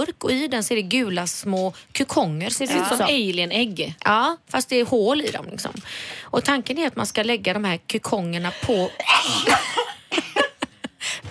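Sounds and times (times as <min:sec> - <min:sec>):
speech: 0:00.0 - 0:10.4
laughter: 0:08.7 - 0:11.0
person double sneezing: 0:08.9 - 0:09.6.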